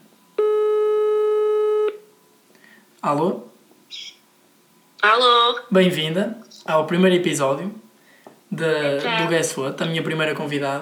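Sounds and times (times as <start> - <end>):
phone call ringback tone: 0.4 - 1.9
speech: 3.0 - 4.1, 5.0 - 7.8, 8.5 - 10.8.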